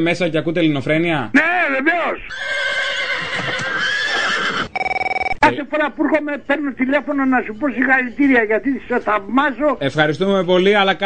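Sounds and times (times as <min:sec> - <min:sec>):
speech: 0:00.0 - 0:02.8, 0:05.5 - 0:11.0
horse neighing in a long shrill whinny: 0:02.2 - 0:05.1.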